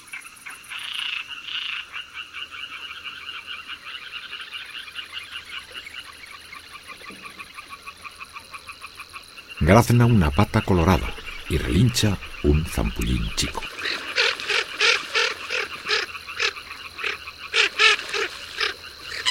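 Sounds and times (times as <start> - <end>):
chorus of Mediterranean tree frogs purring: 0.0 - 19.2
speech: 9.7 - 14.2.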